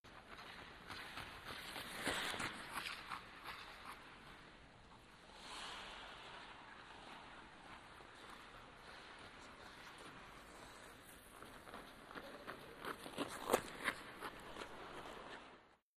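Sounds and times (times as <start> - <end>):
hockey skater skating fast past: 0.1 - 15.8.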